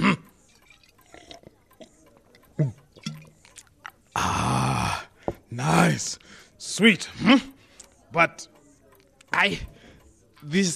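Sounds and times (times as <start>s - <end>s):
drink sipping and swallowing: 0.5s - 4.2s
speech: 2.6s - 2.8s, 5.6s - 7.5s, 8.1s - 8.6s, 9.4s - 9.7s, 10.4s - 10.7s.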